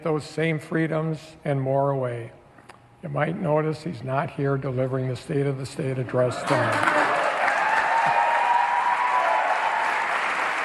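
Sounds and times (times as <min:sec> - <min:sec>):
speech: 0:00.0 - 0:02.4, 0:03.0 - 0:07.0
wild applause from one side of the chamber: 0:06.4 - 0:10.6.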